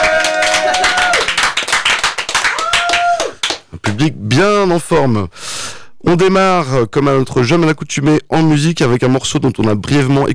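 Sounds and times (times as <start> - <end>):
studio audience rhythmic clapping: 0.0 - 4.0
speech: 4.0 - 10.3.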